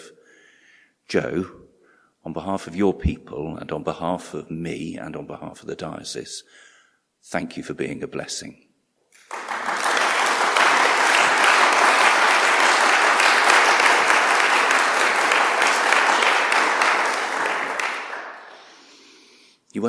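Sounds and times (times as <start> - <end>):
speech: 1.1 - 1.6, 2.2 - 8.6
large crowd applauding in a reverberant indoor space: 9.2 - 18.8.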